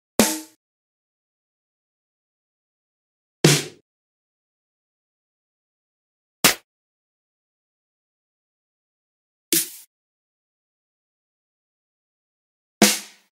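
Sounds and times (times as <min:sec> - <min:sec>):
snare drum: 0:00.2 - 0:00.6, 0:03.4 - 0:03.8, 0:12.8 - 0:13.3.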